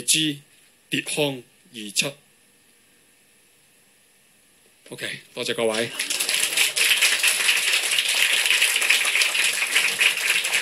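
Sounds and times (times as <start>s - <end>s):
speech: 0.0s - 2.2s, 4.9s - 6.1s
audience applause: 5.7s - 10.5s.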